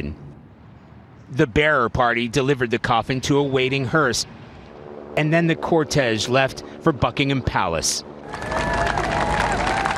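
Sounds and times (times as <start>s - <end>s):
speech: 1.3s - 4.4s, 5.2s - 9.0s
large crowd cheering and applauding: 8.2s - 9.9s.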